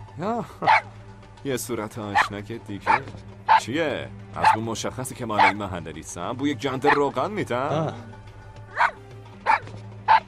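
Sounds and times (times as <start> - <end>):
speech: 0.2 - 8.2
village dog barking: 0.6 - 0.9, 2.1 - 3.7, 4.4 - 4.6, 5.4 - 5.6, 6.8 - 7.0, 8.7 - 10.2.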